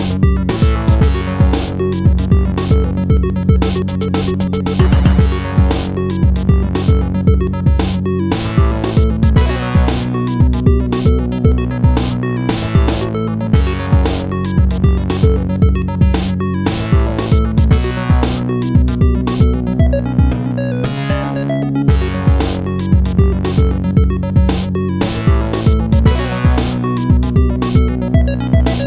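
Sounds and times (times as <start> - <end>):
boss level music: 0.0 - 28.8.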